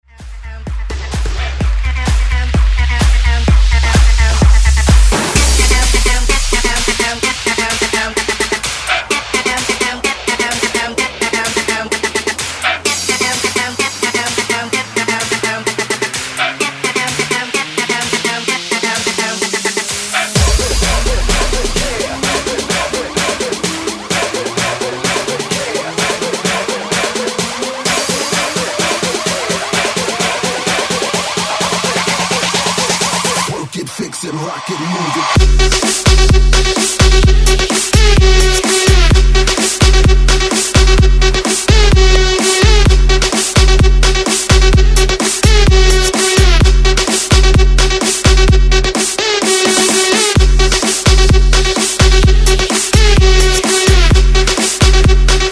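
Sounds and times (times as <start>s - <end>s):
breakbeat mix: 0.0s - 55.5s.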